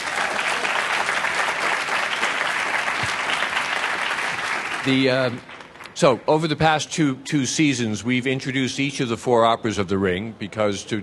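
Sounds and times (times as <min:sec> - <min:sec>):
audience applause welcoming an opera singer: 0:00.0 - 0:05.9
speech: 0:04.8 - 0:11.0.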